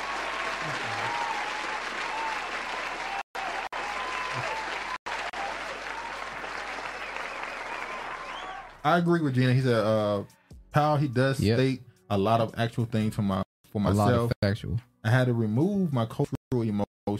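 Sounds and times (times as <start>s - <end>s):
round of applause: 0.0s - 8.9s
speech: 8.8s - 17.1s.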